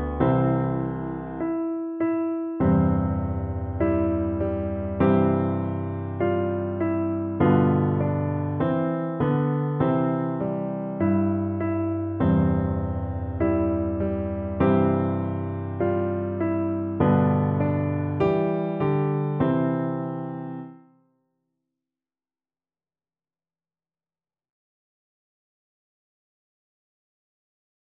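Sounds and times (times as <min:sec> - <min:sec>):
piano duet: 0:00.0 - 0:20.9.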